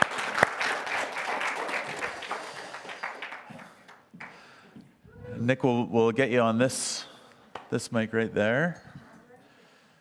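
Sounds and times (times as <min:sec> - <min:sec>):
audience applause welcoming a speaker at a morning gathering: 0:00.0 - 0:04.3
speech: 0:05.5 - 0:07.1, 0:07.7 - 0:08.9.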